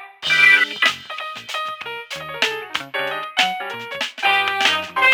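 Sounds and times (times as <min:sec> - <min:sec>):
evening radio jingle: 0:00.2 - 0:05.0.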